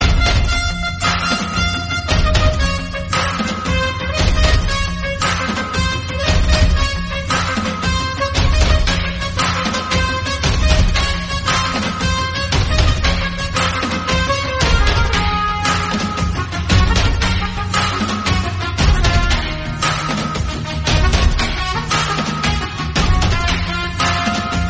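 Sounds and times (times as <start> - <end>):
theme music ringtone: 0.0 - 24.6.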